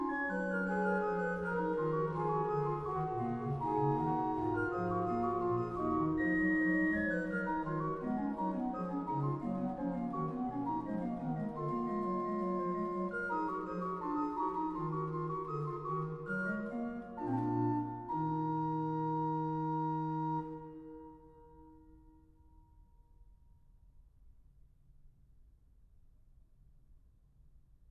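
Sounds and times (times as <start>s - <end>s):
organ chorale: 0.1s - 20.7s.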